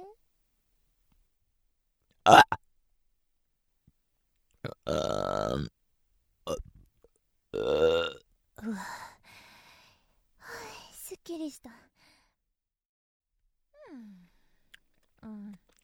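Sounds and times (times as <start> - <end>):
burping: 2.3 - 2.6, 4.6 - 5.7, 7.5 - 8.2
speech: 2.3 - 2.6, 4.9 - 5.7, 11.4 - 11.9.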